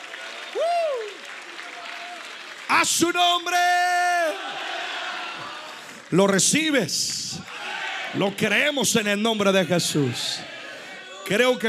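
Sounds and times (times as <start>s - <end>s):
audience applauding: 0.0s - 8.8s
speech: 2.7s - 3.9s, 6.1s - 7.5s, 8.1s - 10.6s, 11.3s - 11.6s.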